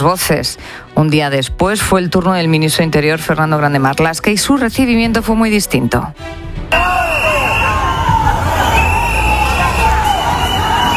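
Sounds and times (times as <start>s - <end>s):
speech: 0.0s - 6.9s
large crowd jeering and shouting: 6.7s - 10.9s
whistles: 6.7s - 10.9s.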